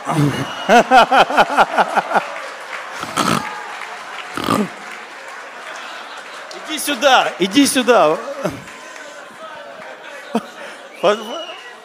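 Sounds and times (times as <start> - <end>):
laughter: 0.0 - 3.7, 4.3 - 11.4
speech: 0.1 - 2.3, 6.8 - 8.7, 10.3 - 11.5
person imitating young lion's roar: 4.4 - 4.8.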